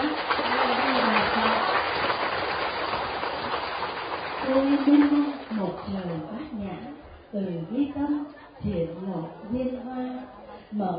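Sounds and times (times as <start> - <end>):
large audience clapping: 0.0 - 6.4
speech: 4.6 - 10.9.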